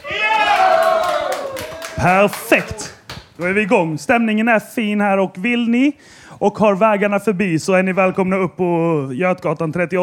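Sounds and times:
shouted cheer: 0.0s - 3.0s
live audience clapping: 0.0s - 3.9s
speech: 2.0s - 10.0s.

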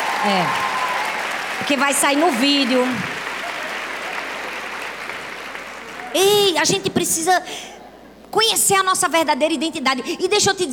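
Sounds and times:
audience clapping: 0.0s - 6.6s
speech: 0.2s - 0.7s, 1.6s - 3.1s, 6.1s - 7.7s, 8.3s - 10.7s.

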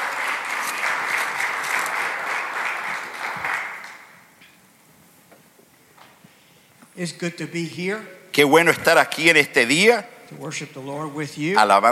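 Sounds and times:
audience applauding: 0.0s - 4.2s
speech: 7.0s - 11.8s.

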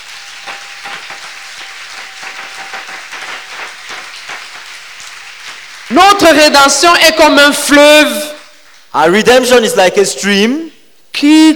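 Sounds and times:
crowd clapping: 0.0s - 8.8s
speech: 5.9s - 8.3s, 9.0s - 11.5s.

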